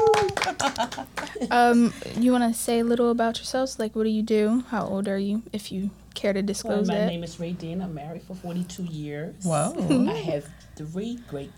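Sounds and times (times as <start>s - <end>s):
person letting out a high sustained cheer: 0.0s - 0.7s
small group applause: 0.0s - 1.6s
speech: 0.5s - 11.5s.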